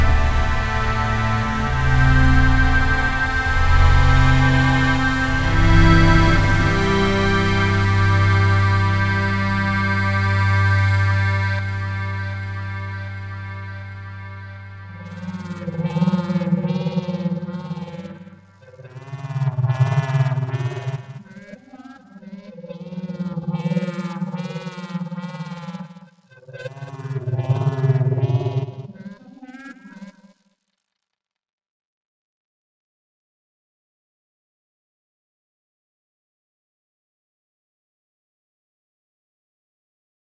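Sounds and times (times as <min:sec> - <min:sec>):
steampunk Victorian steam synth Kontakt instrument: 0:00.0 - 0:30.3.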